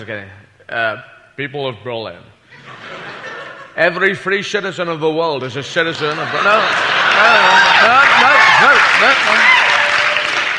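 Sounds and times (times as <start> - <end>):
speech: 0.0 - 2.9, 3.8 - 9.6
laughter: 2.5 - 4.0, 5.8 - 10.0
audience applause: 6.1 - 10.5.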